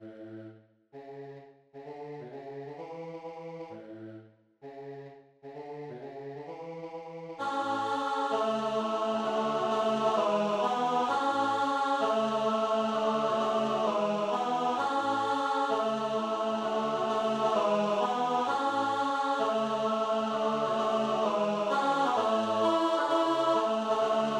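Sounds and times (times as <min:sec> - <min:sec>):
tenor singing: 0:07.4 - 0:24.3.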